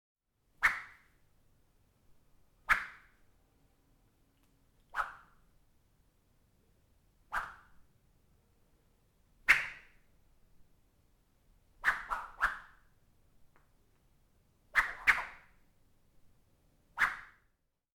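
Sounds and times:
horse whip crack with high attack: 2.7s - 3.0s, 9.5s - 9.8s, 11.8s - 12.6s, 14.8s - 15.4s, 17.0s - 17.4s.

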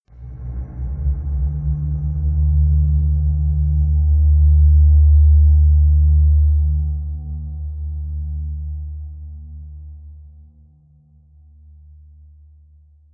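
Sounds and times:
creepy bass horn: 0.1s - 9.8s.

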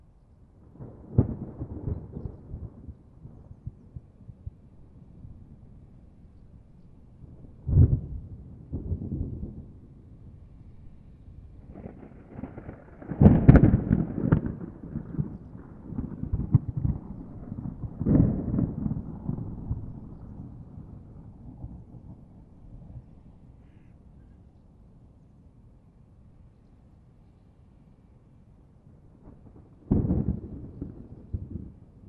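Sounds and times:
violent thunderstorm: 0.6s - 5.8s, 7.2s - 10.5s, 11.4s - 23.4s, 29.0s - 32.0s.

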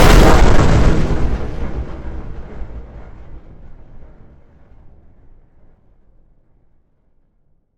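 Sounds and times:
bomb blast explosion: 0.0s - 5.0s.

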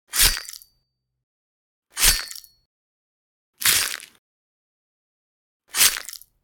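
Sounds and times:
sword cutting off neck or slashing flesh: 0.1s - 0.7s, 2.0s - 2.6s, 3.6s - 4.2s, 5.7s - 6.2s.

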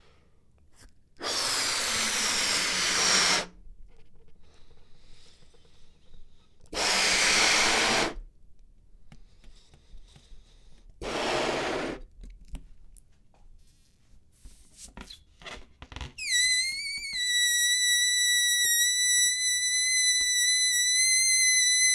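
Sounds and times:
balloon inflating: 1.2s - 3.6s, 6.7s - 8.2s, 11.0s - 12.1s, 16.2s - 21.9s
balloon squeak: 1.2s - 3.6s, 6.7s - 8.2s, 16.2s - 21.9s.

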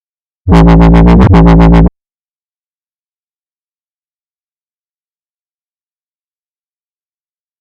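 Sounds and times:
wobble bass: 0.5s - 1.9s.

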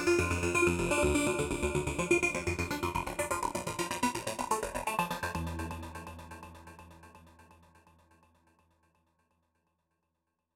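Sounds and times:
trance synthwave music: 0.0s - 7.0s.

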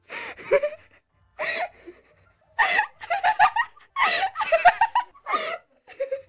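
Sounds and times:
girl laughing: 2.6s - 6.2s.

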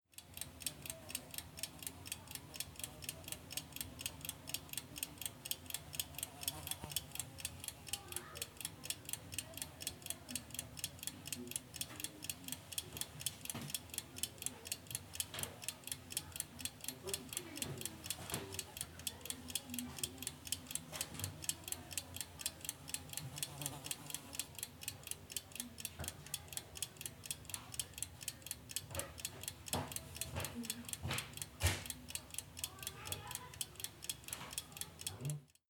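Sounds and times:
old watch in a small antique shop: 0.0s - 35.6s.

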